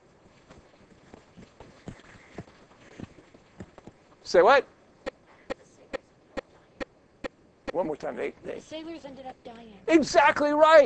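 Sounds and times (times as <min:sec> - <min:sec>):
footsteps of someone running up: 0:00.0 - 0:04.3
constant breathy hiss: 0:00.0 - 0:10.8
speech: 0:04.3 - 0:04.8, 0:07.8 - 0:10.8.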